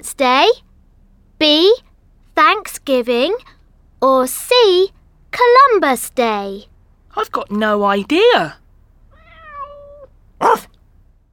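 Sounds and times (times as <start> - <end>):
speech: 0.0 - 0.6, 1.4 - 8.6, 10.4 - 10.7
drawn-out tonal meow: 9.2 - 10.1
single short dog woof: 9.2 - 10.7.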